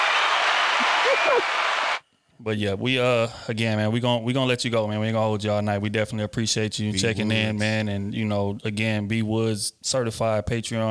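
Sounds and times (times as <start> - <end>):
applause: 0.0 - 2.0
speech: 1.1 - 1.7, 2.4 - 10.8.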